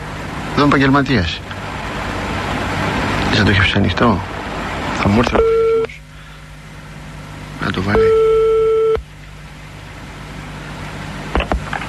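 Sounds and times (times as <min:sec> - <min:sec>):
faint rumble: 0:00.0 - 0:11.8
speech: 0:00.6 - 0:01.6, 0:03.3 - 0:04.3, 0:05.0 - 0:05.6, 0:07.6 - 0:08.2
steady electronic telephone tone: 0:05.3 - 0:05.9, 0:07.9 - 0:09.0.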